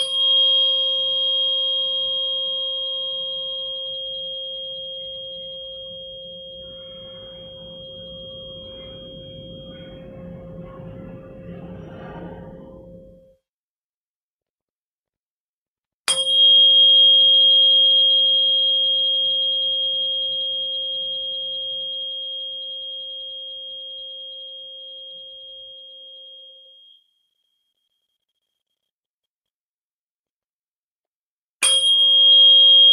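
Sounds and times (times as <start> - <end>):
528 hertz tuning fork ringing: 0.0 - 13.4, 16.1 - 28.9, 31.6 - 32.9.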